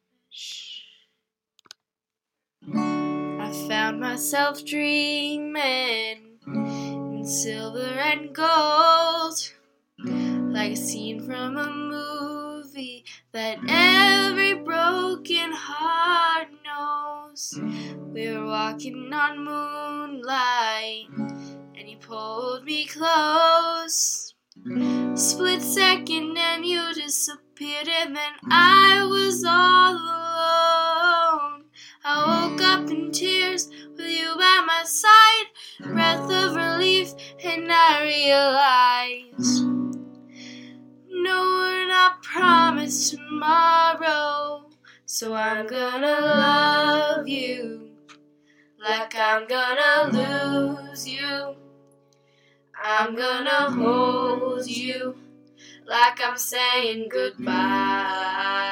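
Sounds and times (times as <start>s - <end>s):
acoustic cover song: 2.6s - 58.7s.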